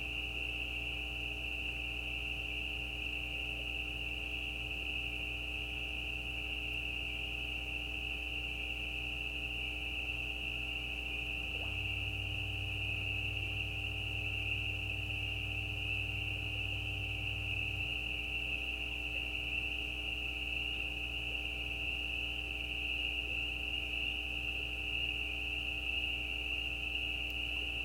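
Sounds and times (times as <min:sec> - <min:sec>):
steady low hum: 0:00.0 - 0:27.8
spring peepers peeping chorus: 0:09.6 - 0:27.8
faint click: 0:27.2 - 0:27.7.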